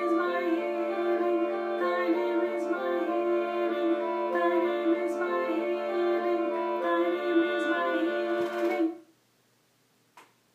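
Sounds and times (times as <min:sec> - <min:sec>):
alto voice singing: 0:00.0 - 0:09.0.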